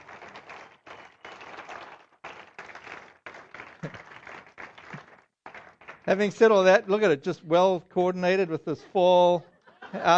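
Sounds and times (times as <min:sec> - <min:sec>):
audience clapping: 0:00.0 - 0:06.9
speech: 0:03.8 - 0:04.0, 0:06.1 - 0:10.1
laughter: 0:08.7 - 0:10.1.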